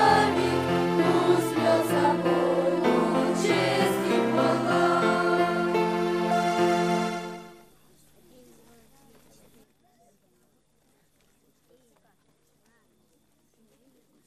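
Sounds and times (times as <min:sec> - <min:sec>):
singing at a children's camp: 0:00.0 - 0:07.5.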